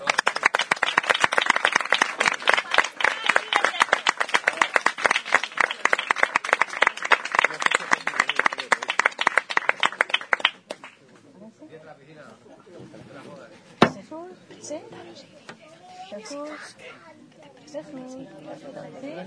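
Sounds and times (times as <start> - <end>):
audience applause: 0.0 - 11.0.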